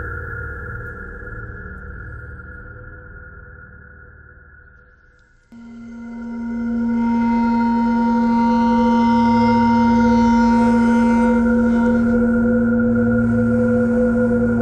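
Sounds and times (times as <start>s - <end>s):
bowed metal: 5.6s - 14.5s.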